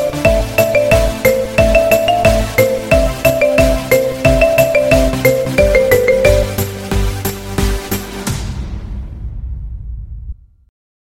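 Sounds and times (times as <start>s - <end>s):
marimba ringtone: 0.0s - 6.8s.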